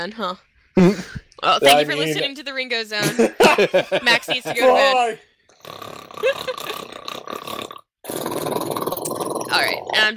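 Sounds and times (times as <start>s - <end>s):
speech: 0.0s - 6.7s, 9.5s - 10.1s
laughter: 3.0s - 4.8s
person snoring: 5.5s - 10.0s.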